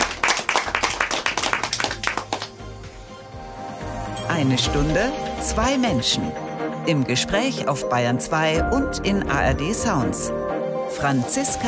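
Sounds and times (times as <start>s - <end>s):
studio audience applauding: 0.0s - 2.7s
speech: 4.4s - 11.6s.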